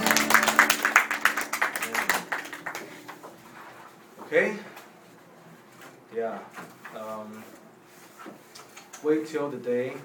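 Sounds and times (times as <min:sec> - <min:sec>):
audience clapping hands: 0:00.0 - 0:03.5
speech: 0:04.3 - 0:04.7, 0:09.0 - 0:10.0.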